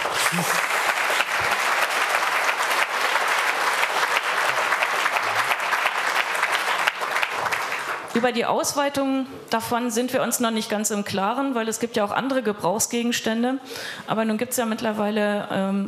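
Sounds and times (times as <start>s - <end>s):
audience applause: 0.0s - 8.1s
speech: 0.3s - 0.7s, 8.2s - 15.8s.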